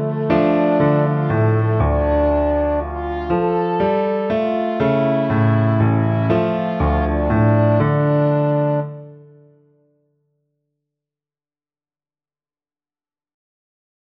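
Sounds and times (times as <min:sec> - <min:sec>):
bugle horn: 0:00.0 - 0:08.9.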